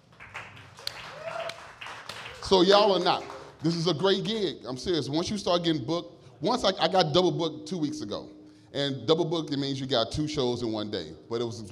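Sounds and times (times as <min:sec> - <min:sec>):
scattered audience clapping: 0:00.0 - 0:04.4
speech: 0:02.5 - 0:11.7.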